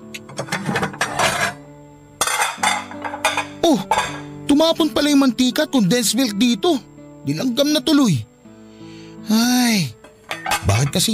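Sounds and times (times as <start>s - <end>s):
plates and cooking pans set down by a kitchen sink: 0.2s - 1.6s, 2.2s - 4.3s, 10.0s - 11.1s
speech: 4.6s - 8.3s, 9.2s - 10.0s, 10.6s - 11.1s.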